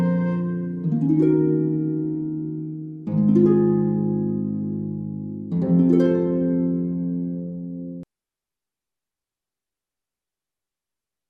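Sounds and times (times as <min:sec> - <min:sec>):
instrumental music: 0:00.0 - 0:08.1.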